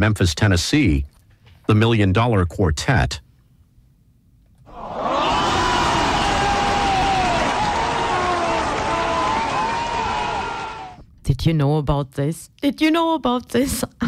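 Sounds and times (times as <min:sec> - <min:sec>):
speech: 0:00.0 - 0:01.1, 0:01.7 - 0:03.2, 0:11.3 - 0:14.0
audience applause: 0:04.7 - 0:11.0.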